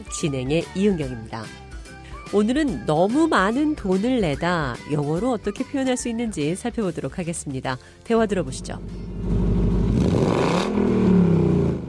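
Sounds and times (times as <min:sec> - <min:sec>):
speech: 0:00.0 - 0:01.6, 0:02.3 - 0:09.4
classic 1968 Ford Mustang engine idling and revving: 0:08.4 - 0:11.8.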